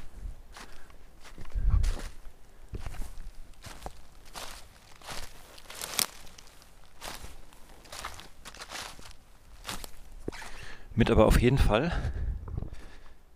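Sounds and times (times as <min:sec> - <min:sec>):
footsteps crunching on a forest path with stones at night: 0:00.0 - 0:10.8
leaf litter rustling: 0:00.0 - 0:10.8
twigs snapping: 0:03.6 - 0:10.0
speech: 0:11.0 - 0:12.2.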